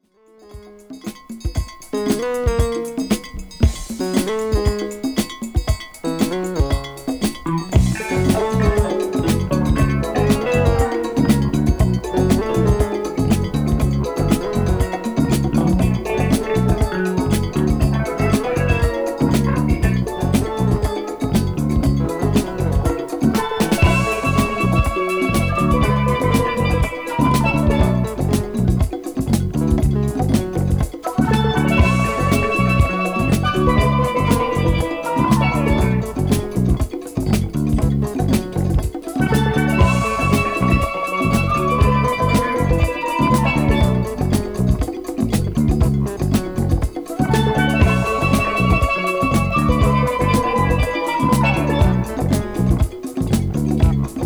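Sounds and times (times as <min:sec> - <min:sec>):
salsa music: 0:00.5 - 0:54.2.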